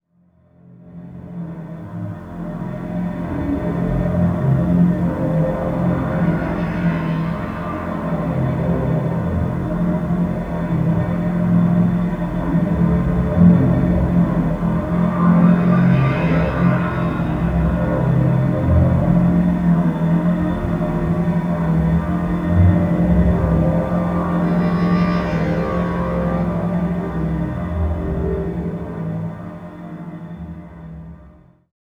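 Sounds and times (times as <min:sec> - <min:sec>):
humming viola pad: 0:02.6 - 0:30.6.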